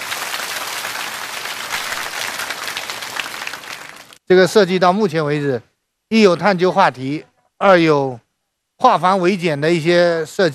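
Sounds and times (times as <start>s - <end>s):
crowd clapping: 0.0s - 4.2s
speech: 4.3s - 8.2s, 8.8s - 10.5s.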